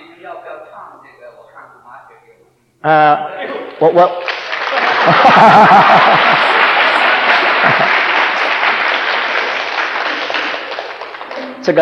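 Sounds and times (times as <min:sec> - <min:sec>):
speech: 0:02.8 - 0:04.4, 0:05.0 - 0:06.4
audience clapping at a talk: 0:03.6 - 0:11.7
voices and laughter: 0:04.8 - 0:08.1.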